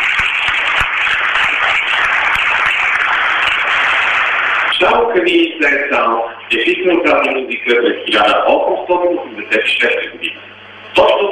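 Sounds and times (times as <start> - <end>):
audience applause: 0.0 - 5.1
speech: 4.8 - 11.2.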